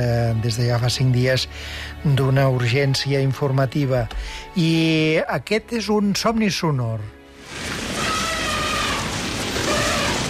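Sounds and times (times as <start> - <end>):
speech: 0.0 - 7.2
herd of elephants running: 7.4 - 10.2.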